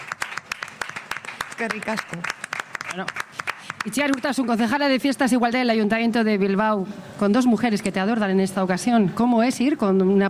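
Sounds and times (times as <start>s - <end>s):
scattered audience claps at a Bilbao city festival event: 0.0s - 4.8s
speech: 1.6s - 10.2s.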